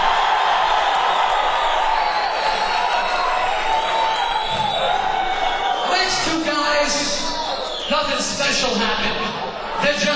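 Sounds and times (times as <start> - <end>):
audience applause: 0.0 - 6.1
audience cheering: 0.0 - 10.1
speech: 8.1 - 10.1.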